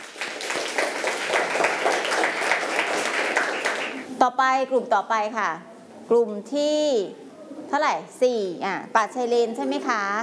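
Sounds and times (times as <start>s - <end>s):
applause from a group for a student group: 0.0s - 4.1s
speech: 4.2s - 10.2s.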